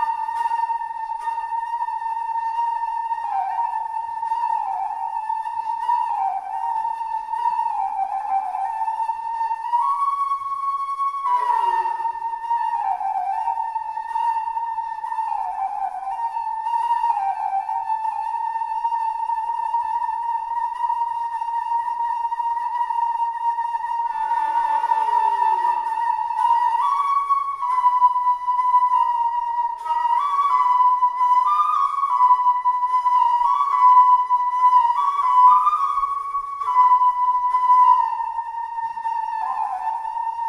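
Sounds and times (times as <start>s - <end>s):
noisy flute: 0.0s - 40.4s.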